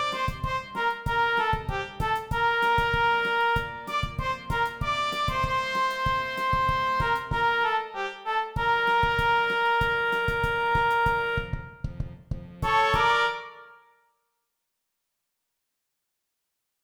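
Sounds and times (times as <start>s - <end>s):
flute: 0.0s - 11.9s, 12.6s - 13.9s
trumpet: 0.0s - 12.0s, 12.6s - 14.1s.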